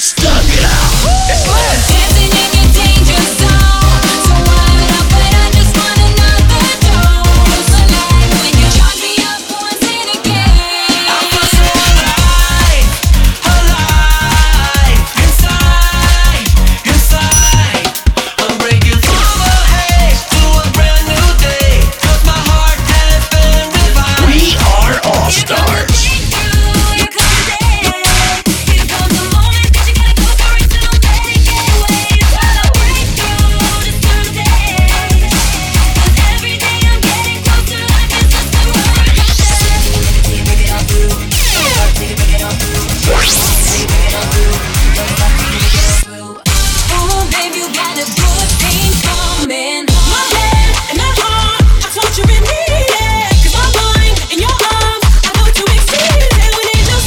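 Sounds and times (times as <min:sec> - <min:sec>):
music: 0:00.2 - 0:57.0.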